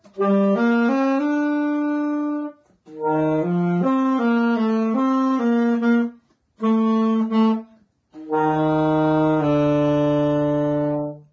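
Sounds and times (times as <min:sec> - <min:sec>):
saxophone: 0:00.0 - 0:11.3.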